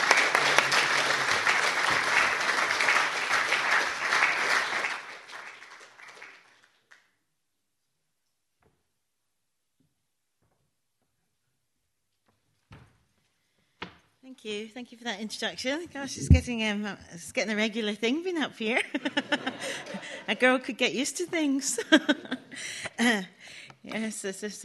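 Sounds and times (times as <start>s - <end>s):
audience applause welcoming poets at a poetry reading: 0.0s - 7.0s
speech: 14.4s - 24.6s
laughter: 18.8s - 20.6s, 21.6s - 22.8s.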